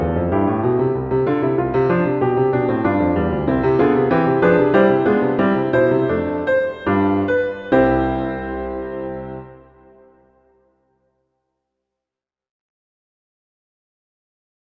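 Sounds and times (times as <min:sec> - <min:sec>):
fugue: 0:00.0 - 0:10.4.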